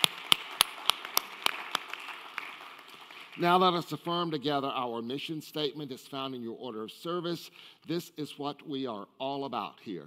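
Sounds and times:
audience applauding guests: 0:00.0 - 0:03.8
sharp rhythmic individual claps: 0:00.0 - 0:04.1
speech: 0:03.4 - 0:10.0.

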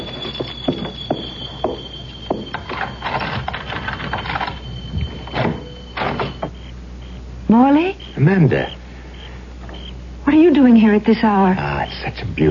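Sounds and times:
keys jingling: 0:02.4 - 0:06.6
speech: 0:07.5 - 0:08.8, 0:10.4 - 0:12.4.

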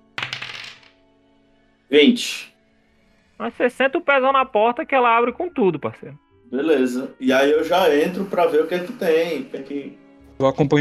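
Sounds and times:
dice rolling: 0:00.0 - 0:01.0
speech: 0:01.9 - 0:02.5, 0:03.4 - 0:10.7.

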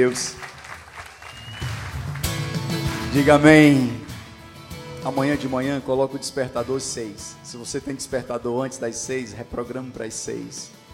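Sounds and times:
speech: 0:00.0 - 0:00.5, 0:03.1 - 0:04.0, 0:05.0 - 0:10.8
audience applause: 0:00.0 - 0:03.3.

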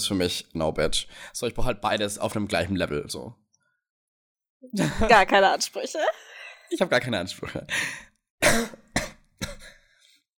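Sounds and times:
speech: 0:00.0 - 0:03.4, 0:04.6 - 0:08.8
person coughing after choking on something swallowed: 0:08.4 - 0:09.8.

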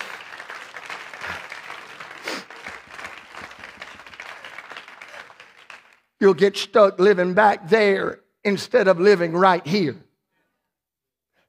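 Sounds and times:
audience clapping hands: 0:00.0 - 0:06.2
speech: 0:06.2 - 0:10.0.

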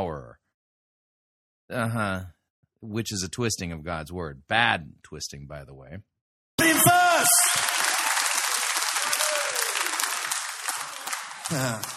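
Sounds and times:
speech: 0:00.2 - 0:00.4, 0:01.7 - 0:06.1, 0:11.5 - 0:11.9
people shouting: 0:06.6 - 0:08.1, 0:09.0 - 0:10.0
crowd applauding and cheering: 0:06.6 - 0:11.9.

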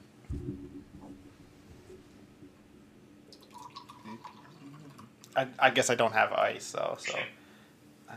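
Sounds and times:
drink poured from can into glass: 0:03.3 - 0:05.2
speech: 0:05.4 - 0:07.4.

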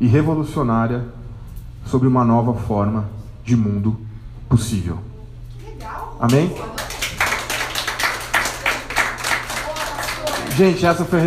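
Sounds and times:
speech: 0:00.0 - 0:01.2, 0:01.9 - 0:05.1, 0:05.8 - 0:06.9, 0:10.6 - 0:11.2
audience clapping: 0:06.3 - 0:11.2.

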